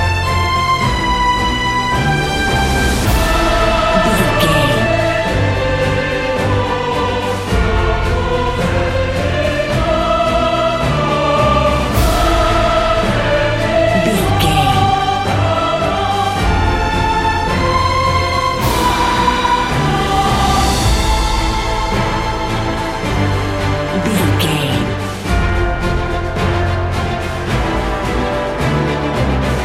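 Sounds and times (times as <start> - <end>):
epic cinematic march music loop: 0.0 - 29.6.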